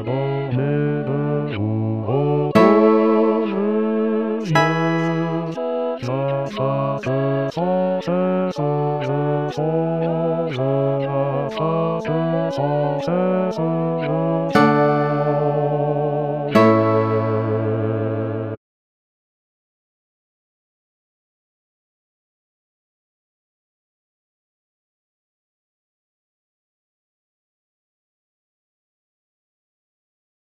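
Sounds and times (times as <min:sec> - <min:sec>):
bass: 0:00.0 - 0:18.6.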